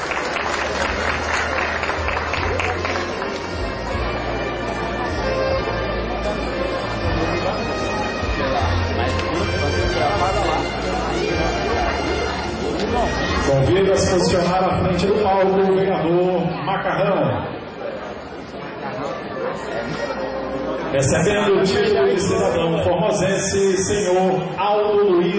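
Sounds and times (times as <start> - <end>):
large audience applause: 0.0 - 4.4
murmuring voices and crowd noise: 0.0 - 25.3
speech: 13.9 - 17.5, 21.0 - 25.3.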